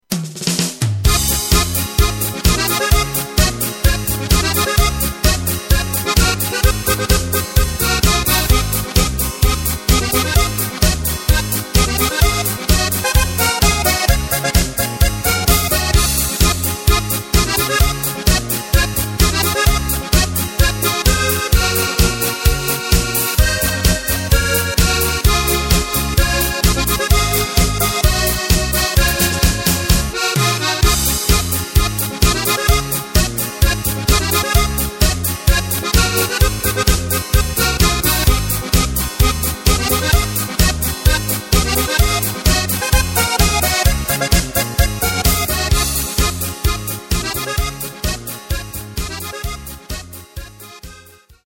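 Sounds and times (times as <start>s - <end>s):
march music: 0.1s - 51.4s.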